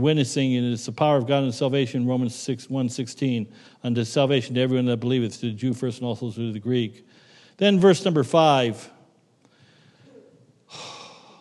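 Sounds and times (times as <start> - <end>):
speech: 0.0 - 9.0
preacher taking a sharp breath during a sermon: 7.1 - 7.6, 9.4 - 11.4.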